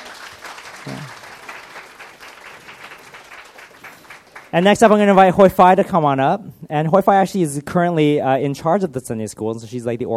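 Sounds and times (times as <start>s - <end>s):
audience applause: 0.0s - 5.4s
speech: 4.5s - 10.1s.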